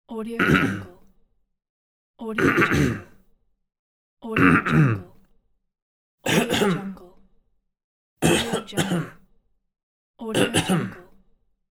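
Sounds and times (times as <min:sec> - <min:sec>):
coughing: 0:00.4 - 0:00.9, 0:02.3 - 0:03.1, 0:04.3 - 0:05.1, 0:06.3 - 0:07.0, 0:08.2 - 0:09.2, 0:10.3 - 0:11.1
throat clearing: 0:00.4 - 0:01.0, 0:02.4 - 0:03.2, 0:04.4 - 0:05.1, 0:06.3 - 0:07.0, 0:08.2 - 0:09.2, 0:10.3 - 0:11.1.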